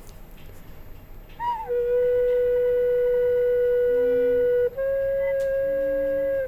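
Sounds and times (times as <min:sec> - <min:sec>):
unfinished recorder pipe blown single note: 0:01.4 - 0:06.4.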